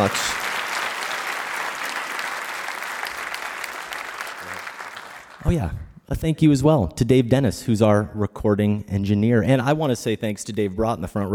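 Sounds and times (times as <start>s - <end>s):
speech: 0.0s - 0.3s, 5.4s - 11.3s
live audience applause: 0.0s - 5.6s.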